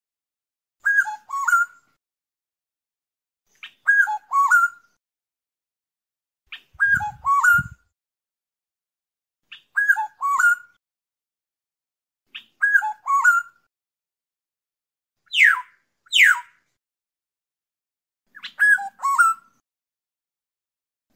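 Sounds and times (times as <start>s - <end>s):
black-naped oriole fluting whistles: 0.8s - 1.8s, 3.9s - 4.8s, 6.5s - 7.8s, 9.5s - 10.8s, 12.3s - 13.6s, 15.3s - 16.5s, 18.3s - 19.6s.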